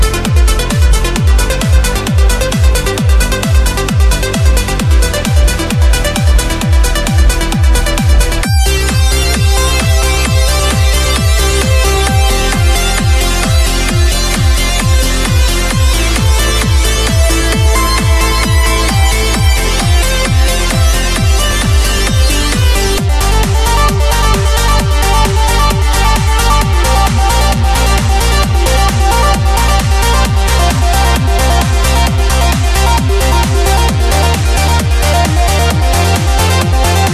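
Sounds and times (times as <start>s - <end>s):
progressive trance music: 0.0s - 37.1s.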